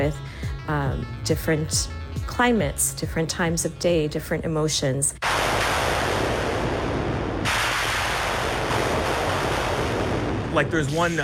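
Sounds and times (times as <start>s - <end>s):
speech: 0.0s - 5.7s, 10.6s - 11.2s
synthesized thunder sounds: 5.2s - 10.8s.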